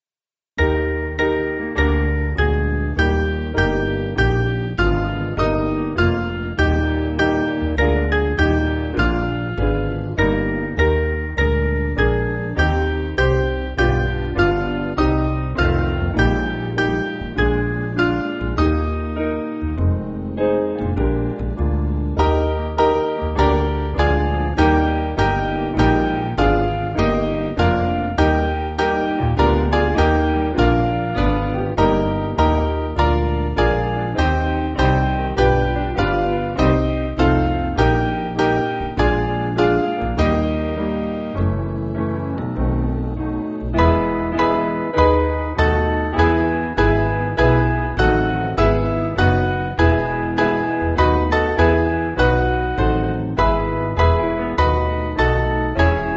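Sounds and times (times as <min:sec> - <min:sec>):
piano backing music for churches: 0:00.6 - 0:56.1.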